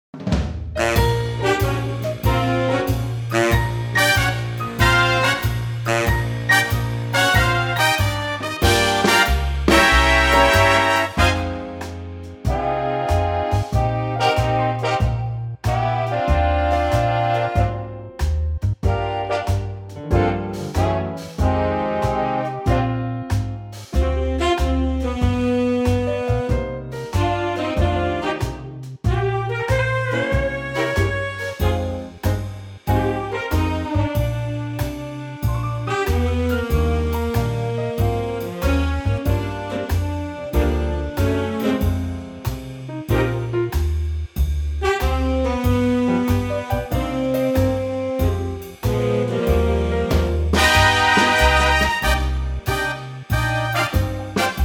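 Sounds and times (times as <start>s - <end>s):
swing music in E flat: 0.0s - 54.6s.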